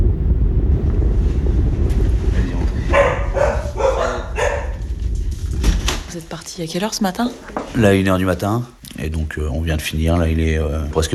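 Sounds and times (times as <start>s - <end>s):
wind over a rough sea: 0.0s - 6.5s
speech: 6.6s - 11.1s.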